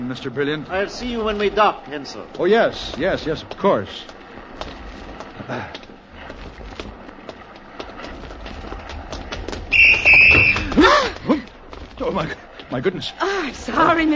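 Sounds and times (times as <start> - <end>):
speech: 0.1 - 4.8, 5.5 - 5.8, 12.0 - 14.1
whistle being blown: 9.7 - 10.7.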